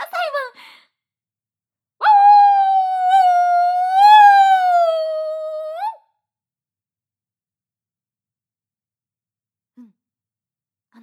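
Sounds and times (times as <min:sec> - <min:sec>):
human voice imitating a wolf howl: 0:02.0 - 0:06.0.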